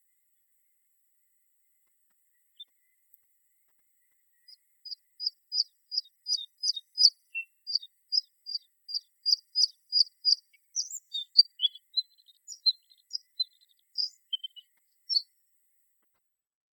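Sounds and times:
bluethroat singing: 4.8s - 15.2s.

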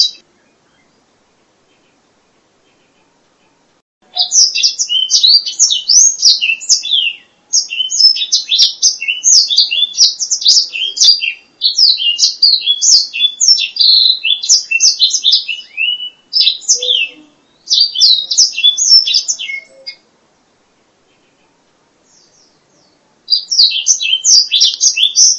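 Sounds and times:
black-throated laughingthrush whistled song: 4.1s - 20.1s, 23.3s - 25.3s.

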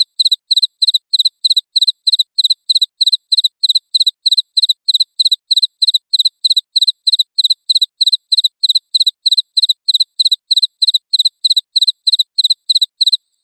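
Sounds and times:
crickets chirping: 0.2s - 13.2s.

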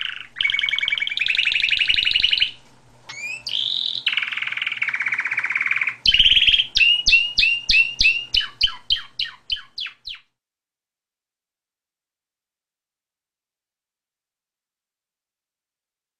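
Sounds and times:
Atlantic canary singing: 0.0s - 10.3s.

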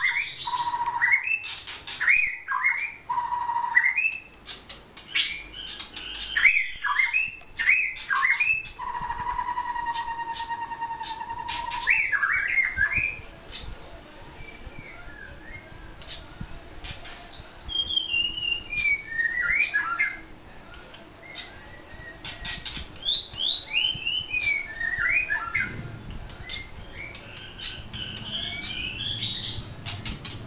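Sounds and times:
white-rumped shama whistled song: 0.0s - 4.3s, 5.1s - 13.6s, 17.2s - 20.2s, 21.2s - 25.8s, 26.4s - 30.4s.

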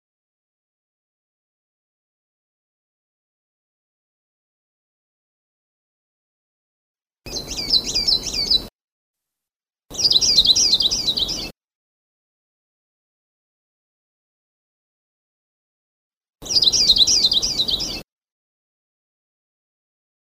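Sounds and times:
Sulawesi leaf warbler singing: 7.3s - 8.7s, 9.9s - 11.5s, 16.4s - 18.0s.

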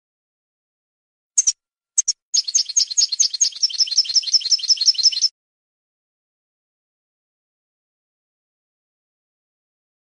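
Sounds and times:
European goldfinch song of tinkling notes: 1.4s - 5.3s.

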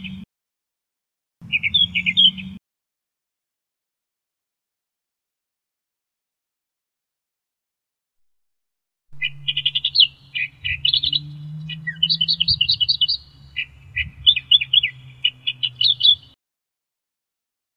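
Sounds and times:
Australian reed warbler song: 0.0s - 0.2s, 1.4s - 2.6s, 9.2s - 16.4s.

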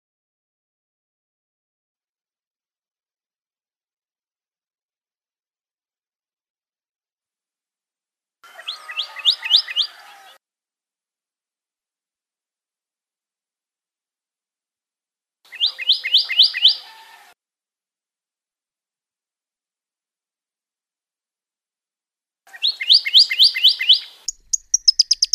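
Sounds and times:
Pyrrhuloxia song with downslurred whistles and rapid trill: 8.6s - 10.0s, 15.5s - 16.9s, 22.5s - 25.3s.

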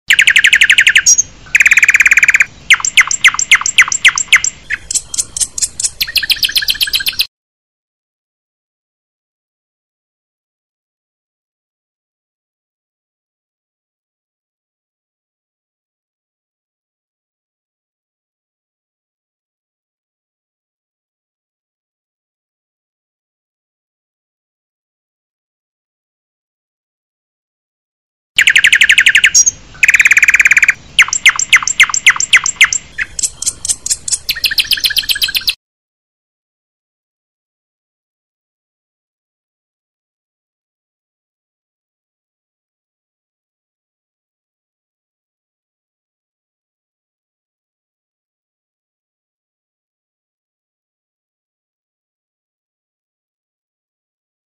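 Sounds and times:
murai and kacer birds singing: 0.1s - 7.3s, 28.4s - 35.6s.

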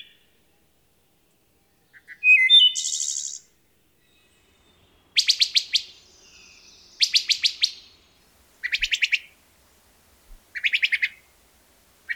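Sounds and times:
wood thrush singing: 2.3s - 12.1s.

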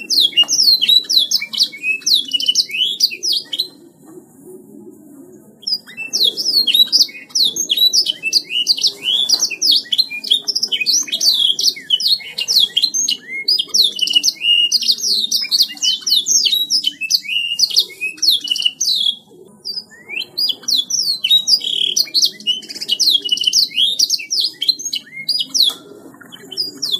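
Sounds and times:
songbird singing fast medley of high chirps, trills and whistled sweeps: 0.0s - 3.9s, 5.3s - 26.9s.

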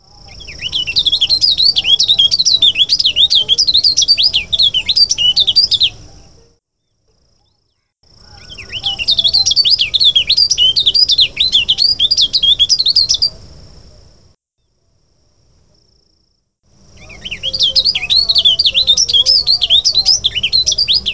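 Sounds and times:
rufous-vented prinia Prinia burnesi giving high warbles: 0.0s - 6.5s, 7.4s - 14.1s, 16.8s - 21.1s.

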